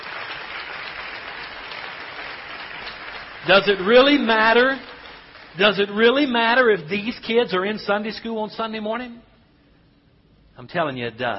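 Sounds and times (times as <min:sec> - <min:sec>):
audience clapping hands: 0:00.0 - 0:06.4
speech: 0:03.4 - 0:04.9, 0:05.6 - 0:09.3, 0:10.6 - 0:11.3.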